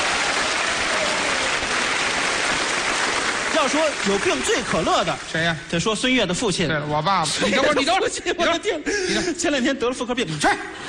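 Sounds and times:
audience applause: 0:00.0 - 0:05.5
speech: 0:03.6 - 0:10.8.

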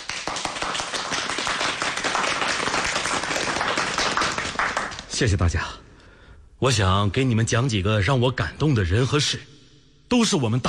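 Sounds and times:
audience applause: 0:00.0 - 0:05.2
speech: 0:05.2 - 0:05.8, 0:06.6 - 0:09.5, 0:10.1 - 0:10.6.

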